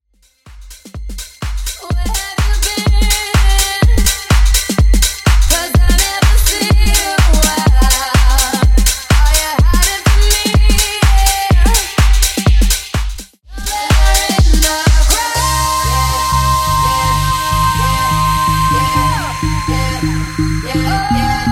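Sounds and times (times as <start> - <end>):
house drum loop: 0.2 - 21.5.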